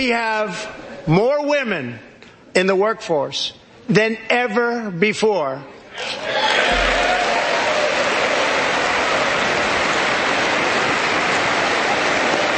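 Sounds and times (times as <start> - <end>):
speech: 0.0 - 7.0
standing audience applauding women in white: 6.2 - 12.5.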